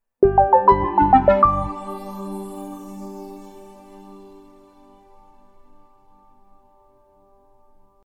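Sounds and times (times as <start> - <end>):
sound logo: 0.2 - 5.2.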